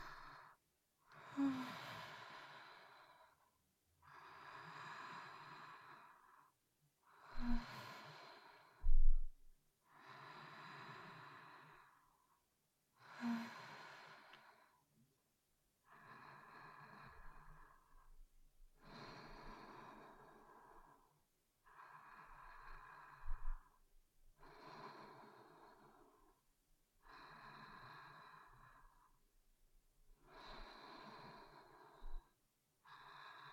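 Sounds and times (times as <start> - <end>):
person breathing in sleep recorded with binaural microphones: 0.0 - 12.3, 13.0 - 14.8, 15.8 - 18.2, 18.8 - 23.8, 24.4 - 26.4, 27.0 - 29.2, 30.2 - 33.5.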